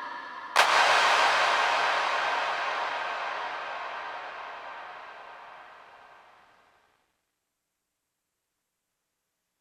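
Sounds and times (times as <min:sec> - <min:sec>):
large bright reverb from an Alesis MidiVerb: 0:00.6 - 0:06.6.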